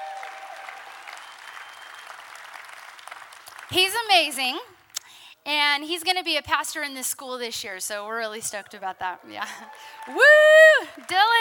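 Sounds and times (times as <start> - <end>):
audience applause: 0.0 - 3.8, 9.5 - 11.4
speech: 3.7 - 4.8, 5.4 - 11.4.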